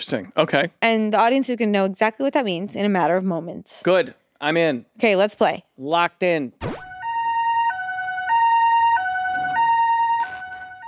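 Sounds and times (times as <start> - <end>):
speech: 0.0 - 6.8
two-tone emergency vehicle siren: 6.6 - 10.8.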